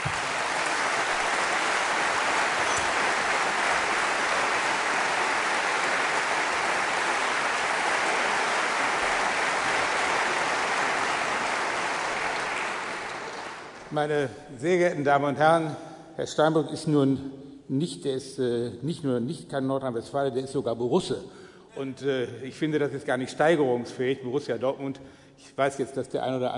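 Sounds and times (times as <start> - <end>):
large audience clapping: 0.0 - 14.0
speech: 13.9 - 26.5.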